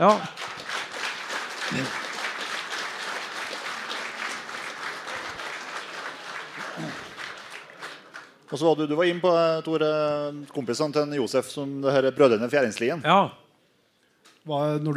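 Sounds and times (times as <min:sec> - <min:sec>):
speech: 0:00.0 - 0:00.4, 0:01.7 - 0:02.0, 0:08.5 - 0:13.4, 0:14.4 - 0:14.9
crowd applause: 0:00.0 - 0:08.5.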